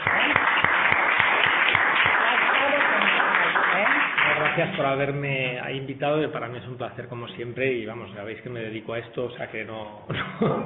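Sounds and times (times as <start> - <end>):
audience applause: 0.0 - 5.1
speech: 4.6 - 10.6.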